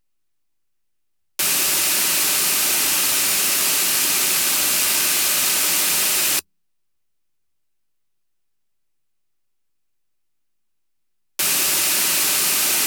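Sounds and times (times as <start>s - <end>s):
white noise reverberation in an announcer booth: 1.9s - 6.4s, 11.7s - 12.8s.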